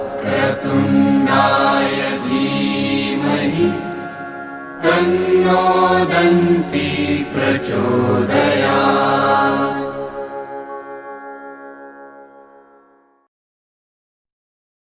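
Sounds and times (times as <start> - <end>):
mantra chanting: 0.0 - 4.2, 4.8 - 10.4.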